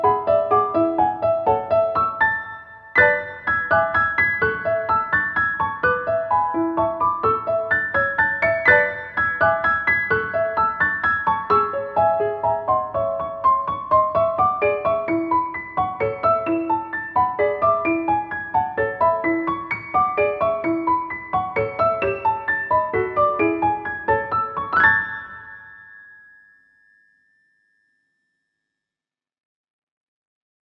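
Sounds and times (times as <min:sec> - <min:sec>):
music box piano melody: 0:00.0 - 0:28.0.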